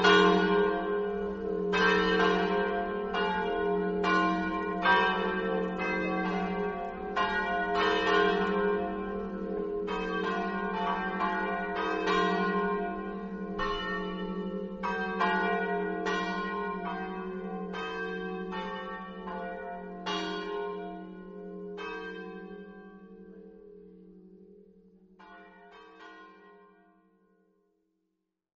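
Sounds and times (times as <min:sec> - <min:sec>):
bells ringing in Gradisca: 0:00.0 - 0:22.6.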